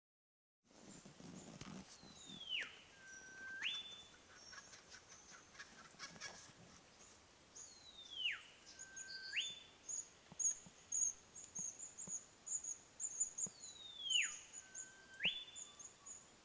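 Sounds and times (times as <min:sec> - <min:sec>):
olive whistler song: 0:02.4 - 0:04.0, 0:08.2 - 0:09.6, 0:14.0 - 0:16.2.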